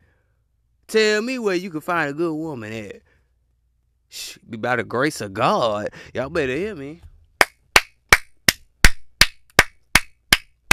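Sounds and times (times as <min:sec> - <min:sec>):
speech: 0:00.9 - 0:03.1, 0:04.1 - 0:07.1
sharp hand claps: 0:07.4 - 0:10.7.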